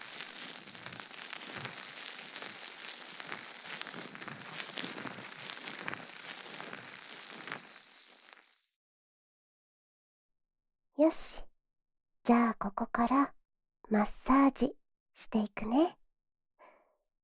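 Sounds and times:
fizzing and bubbling ASMR sound: 0.0s - 8.6s
speech: 11.0s - 11.4s, 12.3s - 16.0s.

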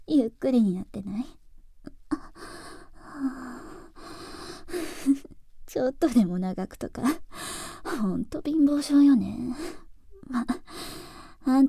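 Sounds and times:
speech: 0.2s - 1.4s, 5.8s - 10.6s, 11.5s - 11.6s
person breathing close to the listener: 2.1s - 5.2s, 7.3s - 8.0s, 10.6s - 11.4s.

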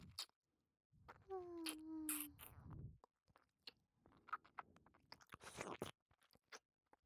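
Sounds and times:
wet licking and lip-smacking: 1.6s - 6.6s.

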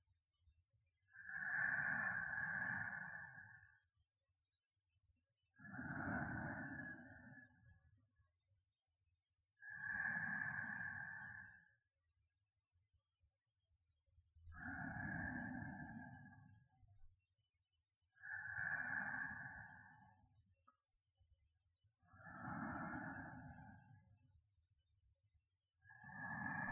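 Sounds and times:
sleeping breath: 1.1s - 3.9s, 5.6s - 7.8s, 9.6s - 11.8s, 14.5s - 16.8s, 18.1s - 20.3s, 22.1s - 24.1s, 25.9s - 26.7s.

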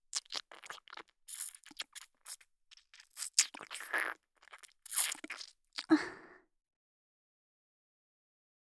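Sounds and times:
ASMR ear licking sounds: 0.1s - 5.9s.

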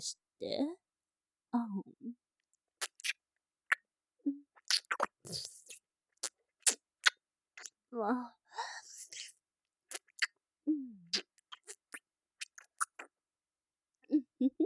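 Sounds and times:
fellatio sounds: 2.8s - 13.2s, 14.0s - 14.6s.

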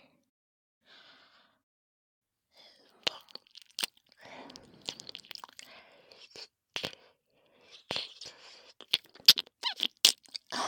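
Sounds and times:
binaural ear licking: 3.0s - 7.0s, 7.7s - 10.5s.

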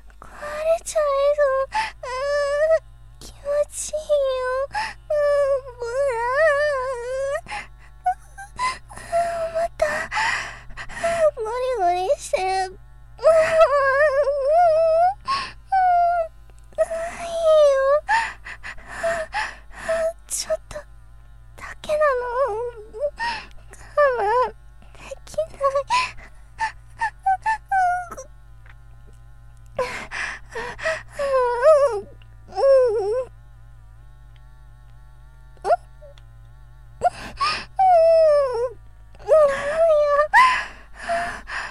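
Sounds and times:
live performance voice only with electric massager: 0.2s - 15.2s, 15.8s - 20.8s, 21.6s - 28.3s, 29.8s - 33.3s, 37.8s - 40.4s.

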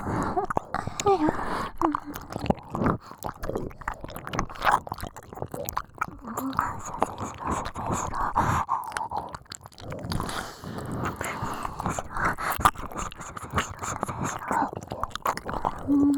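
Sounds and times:
ear licking: 0.0s - 16.1s
whispering: 15.8s - 16.1s.

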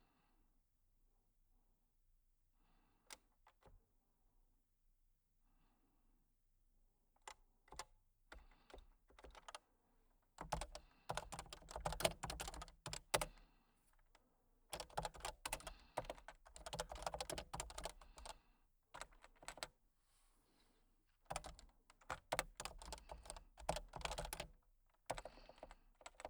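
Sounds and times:
typing: 7.7s - 9.6s, 10.4s - 13.3s, 14.8s - 18.4s, 19.0s - 19.7s, 21.3s - 26.2s
breathing: 8.3s - 9.1s, 10.5s - 14.0s, 14.8s - 26.2s.

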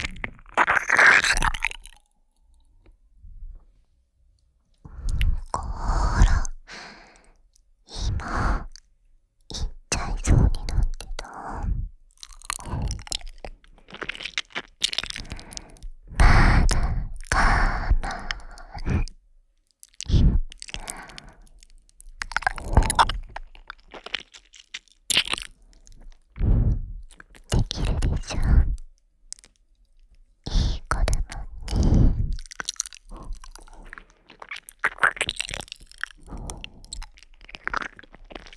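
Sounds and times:
ear licking: 0.0s - 2.0s, 4.9s - 7.2s, 9.5s - 19.1s, 19.8s - 21.4s, 22.2s - 24.5s, 25.1s - 29.5s, 30.5s - 38.5s.

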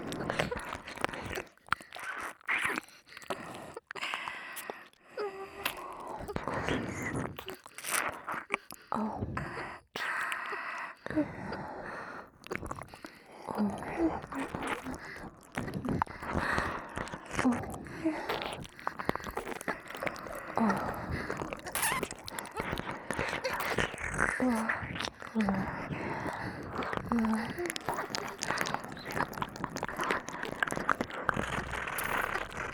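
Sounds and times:
binaural ear licking: 0.0s - 32.7s
moaning: 13.6s - 32.7s.

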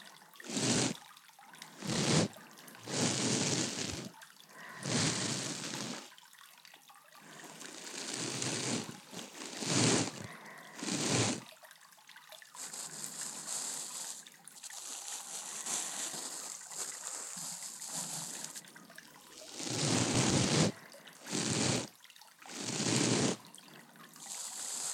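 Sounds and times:
ear cleaning after a bath recorded with a binaural microphone: 0.4s - 1.0s, 1.8s - 6.0s, 7.4s - 11.4s, 12.6s - 18.6s, 19.4s - 21.9s, 22.5s - 23.4s, 24.2s - 24.9s.

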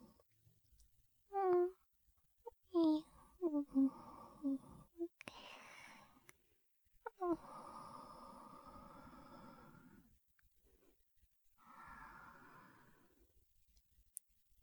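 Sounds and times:
person talking in sleep: 1.3s - 1.8s, 2.5s - 6.2s, 7.0s - 10.1s
person breathing in sleep: 3.1s - 6.2s, 7.1s - 10.1s, 11.6s - 13.2s.

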